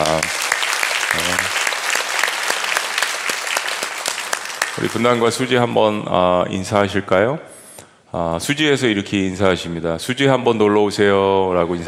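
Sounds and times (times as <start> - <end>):
audience applause: 0.0 - 5.5
speech: 1.2 - 1.6, 4.8 - 7.5, 8.1 - 11.8.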